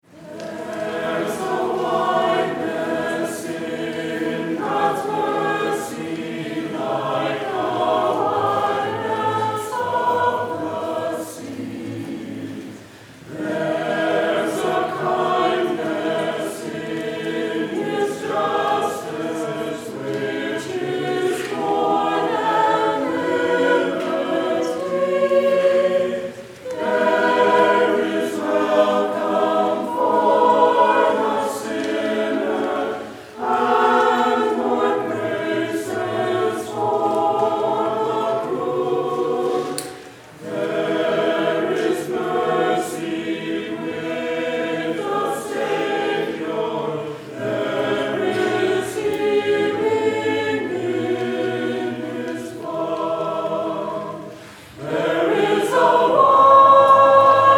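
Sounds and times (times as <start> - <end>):
choir singing: 0.0 - 57.5.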